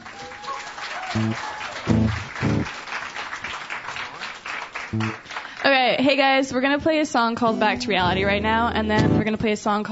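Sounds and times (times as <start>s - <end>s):
cheers and whoops: 0.0s - 2.3s
crowd applauding: 0.0s - 5.9s
speech: 1.2s - 2.8s, 4.9s - 9.8s.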